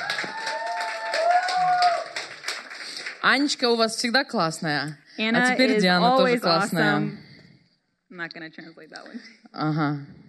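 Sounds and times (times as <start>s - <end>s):
audience applause at a live event: 0.0s - 3.5s
speech: 3.2s - 7.2s, 8.1s - 10.2s.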